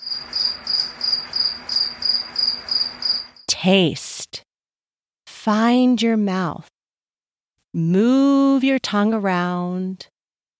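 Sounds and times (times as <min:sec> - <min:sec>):
cricket chirping: 0:00.0 - 0:03.5
speech: 0:03.6 - 0:04.1, 0:05.5 - 0:06.7, 0:07.7 - 0:10.1.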